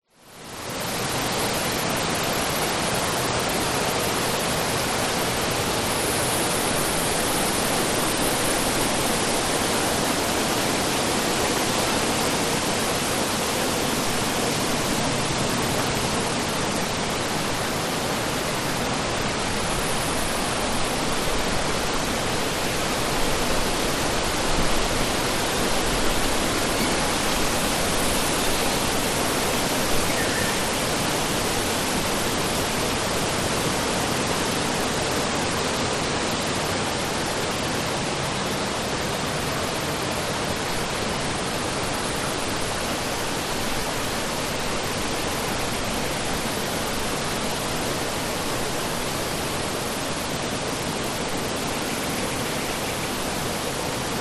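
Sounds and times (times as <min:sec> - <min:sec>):
crickets chirping in a rural Australian forest in spring: 0:00.3 - 0:54.1
birds calling in a rural Australian forest in spring: 0:26.4 - 0:31.6.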